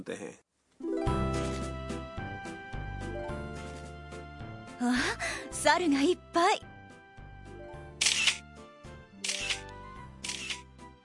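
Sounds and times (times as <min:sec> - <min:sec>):
speech: 0:00.0 - 0:01.2, 0:04.8 - 0:06.7
soft musical background: 0:00.8 - 0:11.0
camera shutter clicking as photos are taken: 0:08.0 - 0:08.4, 0:09.2 - 0:10.7.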